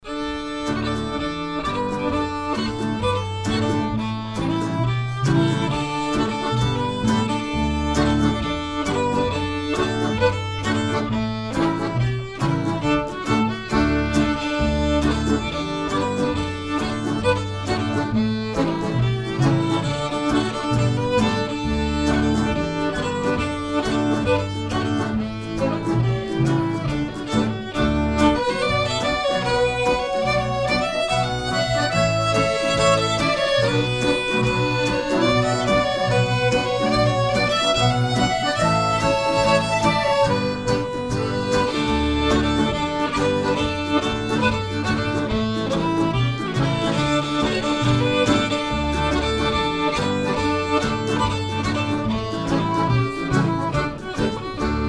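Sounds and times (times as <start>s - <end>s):
quartet playing: 0.1s - 54.8s.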